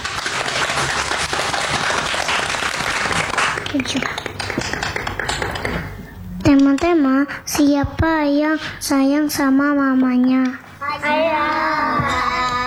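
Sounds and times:
audience applause: 0:00.0 - 0:05.6
speech: 0:03.7 - 0:04.2, 0:06.9 - 0:12.5.

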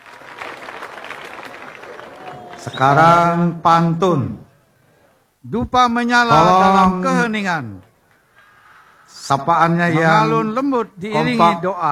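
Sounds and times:
group clapping at a cultural event: 0:00.0 - 0:02.8
speech: 0:02.6 - 0:04.5, 0:05.4 - 0:07.9, 0:09.1 - 0:11.9.

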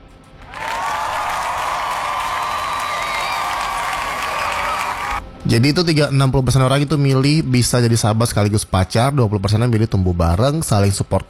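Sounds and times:
applause: 0:00.4 - 0:05.2
speech: 0:05.4 - 0:11.2.

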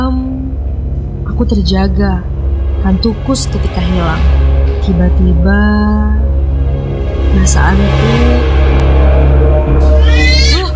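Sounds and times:
steady low hum: 0:00.0 - 0:10.7
speech: 0:01.4 - 0:06.2, 0:07.4 - 0:08.6
cat meowing: 0:09.8 - 0:10.7.

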